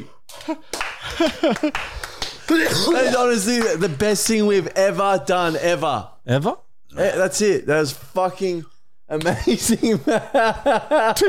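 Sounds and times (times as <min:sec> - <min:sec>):
speech: 0:00.0 - 0:11.2
hand claps: 0:00.2 - 0:02.6, 0:03.4 - 0:04.4
laughter: 0:00.4 - 0:01.9, 0:09.2 - 0:11.2.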